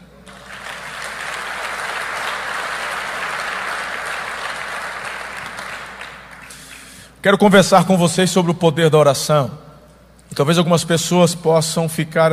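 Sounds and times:
audience applause: 0:00.3 - 0:07.0
speech: 0:07.2 - 0:09.6, 0:10.3 - 0:12.3.

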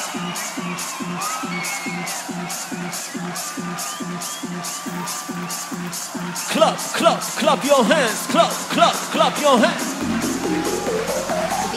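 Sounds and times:
shrill whistles: 0:00.0 - 0:06.9
festival crowd cheering and whooping: 0:00.0 - 0:11.7
people shouting: 0:00.0 - 0:11.7
pounding dance beat: 0:00.0 - 0:11.7
speech: 0:00.1 - 0:10.7.

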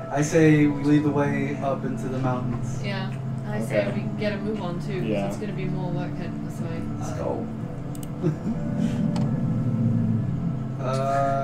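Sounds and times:
speech: 0:00.1 - 0:07.6, 0:08.2 - 0:09.4, 0:10.8 - 0:11.4
roar echoing through a cavern: 0:08.6 - 0:11.4.

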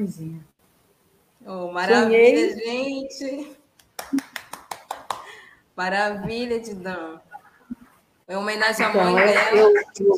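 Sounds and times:
speech: 0:00.0 - 0:00.5, 0:01.4 - 0:04.3, 0:05.8 - 0:07.3, 0:08.3 - 0:10.1
crisp hand claps: 0:03.8 - 0:05.5.

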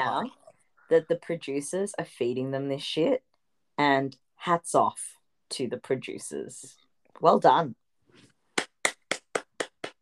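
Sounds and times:
speech: 0:00.0 - 0:07.8
sharp hand claps: 0:08.5 - 0:10.0.

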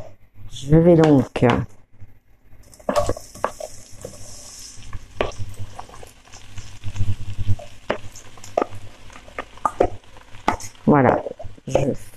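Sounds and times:
speech: 0:00.6 - 0:01.8
endives sizzling in hot oil in a pan: 0:02.6 - 0:12.1.

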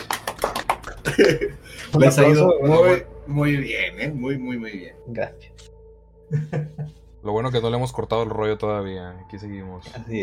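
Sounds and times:
hand claps: 0:00.0 - 0:01.5
laughter: 0:00.4 - 0:02.0, 0:06.3 - 0:07.0
speech: 0:01.2 - 0:05.5, 0:06.3 - 0:10.2.

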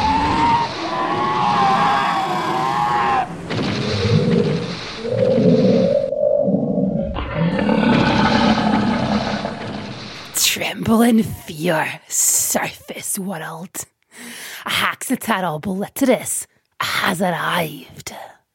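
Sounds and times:
Dino Riders dinosaurs roaring and screeching as they charge: 0:00.0 - 0:10.4
speech: 0:10.9 - 0:13.9, 0:14.8 - 0:18.3.

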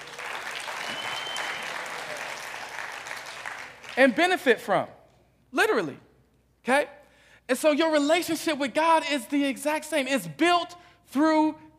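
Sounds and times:
audience applauding: 0:00.0 - 0:04.2
speech: 0:04.0 - 0:11.7.

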